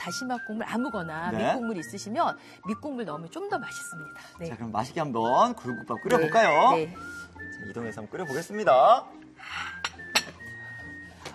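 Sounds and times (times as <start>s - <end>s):
speech: 0.0s - 9.8s
cooking pot set out for making oyster rice soup, metallic clinks: 9.5s - 10.5s.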